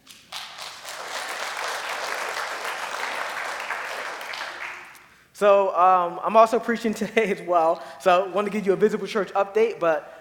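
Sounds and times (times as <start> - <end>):
audience applause: 0.3 - 5.0
speech: 5.4 - 10.1.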